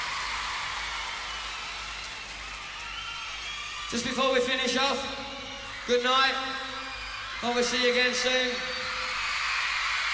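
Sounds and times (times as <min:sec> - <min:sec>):
audience applause: 0:00.0 - 0:03.9, 0:08.9 - 0:10.1
speech: 0:03.9 - 0:05.2, 0:05.9 - 0:06.6, 0:07.4 - 0:08.8.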